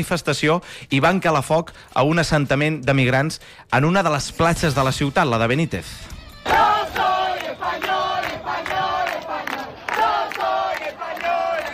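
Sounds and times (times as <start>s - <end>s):
speech: 0.0s - 6.6s
crowd chanting slogans at a protest: 6.4s - 11.7s.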